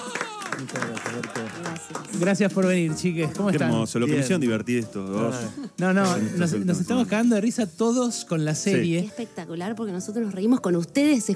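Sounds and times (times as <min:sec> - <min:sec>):
audience applause: 0:00.0 - 0:02.5
speech: 0:00.6 - 0:11.3.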